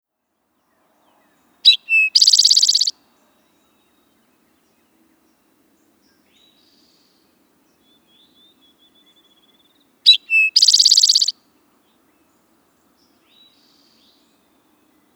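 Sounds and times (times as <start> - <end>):
Eastern towhee calls: 1.6 - 3.0, 8.3 - 11.4.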